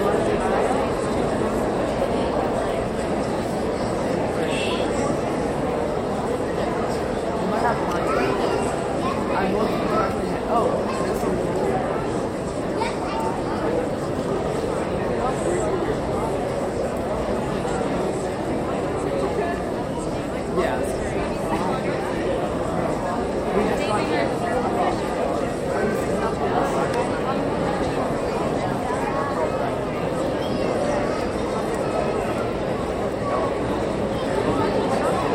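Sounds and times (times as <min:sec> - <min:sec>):
high school graduation crowd idle chatter in an auditorium: 0:00.0 - 0:35.3.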